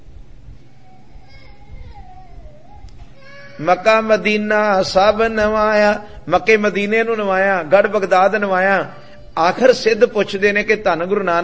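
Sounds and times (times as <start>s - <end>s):
child's cry in a congregation during a Sikh religious talk: 0.6s - 4.0s
speech: 3.6s - 11.4s.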